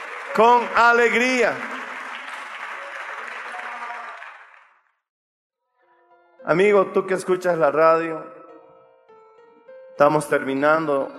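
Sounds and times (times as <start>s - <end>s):
audience applause: 0.0s - 4.9s
speech: 0.3s - 1.7s, 6.5s - 8.4s, 10.0s - 11.1s.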